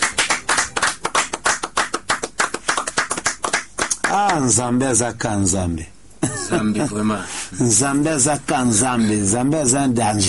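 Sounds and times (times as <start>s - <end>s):
congregation rhythmic hand clapping praising God at a Swahili-language religious gathering: 0.0s - 4.5s
speech: 4.2s - 10.2s.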